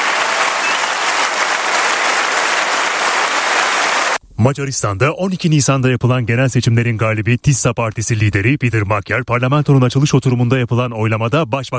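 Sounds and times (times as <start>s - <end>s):
applause in the Hungarian parliament for the new prime minister's oath: 0.0s - 4.2s
speech: 4.4s - 11.7s.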